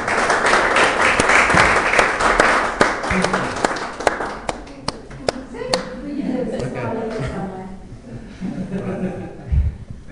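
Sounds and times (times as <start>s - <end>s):
audience round of applause: 0.0s - 5.9s
laughter: 5.5s - 9.8s.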